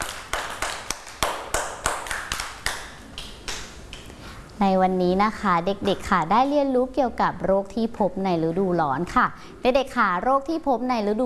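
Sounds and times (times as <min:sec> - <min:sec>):
children clapping hands: 0:00.0 - 0:04.1
speech: 0:04.6 - 0:11.2.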